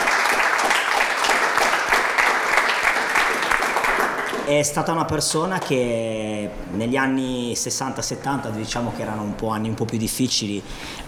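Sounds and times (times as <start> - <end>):
audience applause: 0.0 - 4.5
speech: 4.5 - 11.0.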